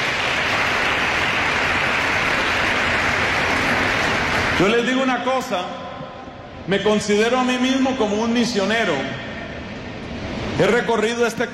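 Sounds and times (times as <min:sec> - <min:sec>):
audience applause: 0:00.0 - 0:04.8
speech: 0:04.6 - 0:05.8, 0:06.7 - 0:09.3, 0:10.6 - 0:11.5.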